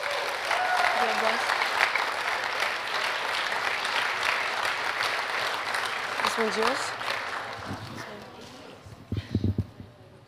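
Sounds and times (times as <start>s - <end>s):
round of applause: 0.0s - 8.8s
speech: 1.1s - 1.6s, 6.4s - 7.0s.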